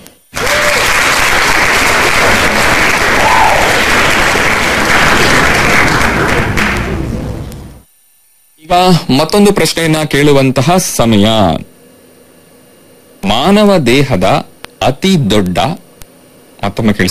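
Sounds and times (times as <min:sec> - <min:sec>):
applause for quiz participants who sent correct answers: 0:00.3 - 0:07.2
speech: 0:08.7 - 0:11.7, 0:13.2 - 0:15.8, 0:16.6 - 0:17.0.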